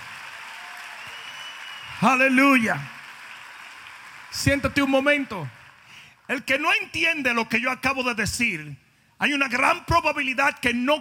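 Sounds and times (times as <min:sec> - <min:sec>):
audience applause: 0:00.0 - 0:06.1
speech: 0:02.0 - 0:03.0, 0:04.3 - 0:05.6, 0:06.3 - 0:10.9.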